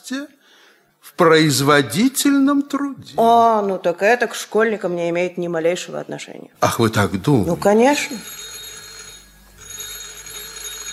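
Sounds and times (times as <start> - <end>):
speech: 0.1 - 0.4, 1.1 - 8.4
telephone ringing: 6.9 - 10.9.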